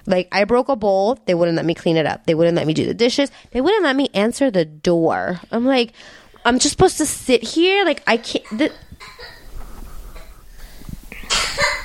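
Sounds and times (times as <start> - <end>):
speech: 0.1 - 9.4
woman coughing: 8.3 - 9.5, 11.2 - 11.8.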